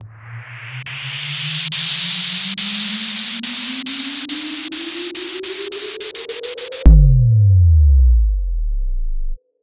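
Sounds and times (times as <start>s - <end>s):
movie trailer impact: 6.9s - 9.4s.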